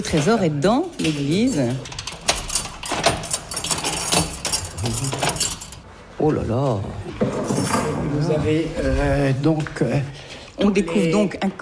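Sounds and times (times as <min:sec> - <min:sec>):
speech: 0:00.0 - 0:01.9, 0:06.2 - 0:11.6
keys jangling and clicking in two locks: 0:00.9 - 0:05.8.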